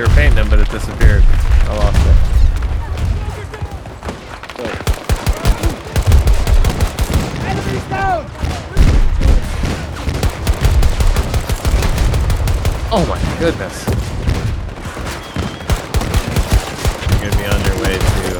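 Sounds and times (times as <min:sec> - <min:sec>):
speech: 0:00.0 - 0:02.4, 0:12.9 - 0:13.9
players talking: 0:00.0 - 0:18.3
video game gunfire with heavy booms: 0:00.0 - 0:18.3.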